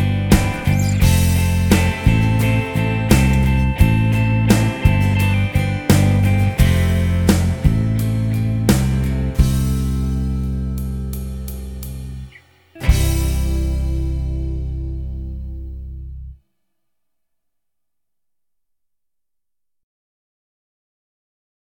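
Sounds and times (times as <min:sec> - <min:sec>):
backing track: 0:00.0 - 0:15.8.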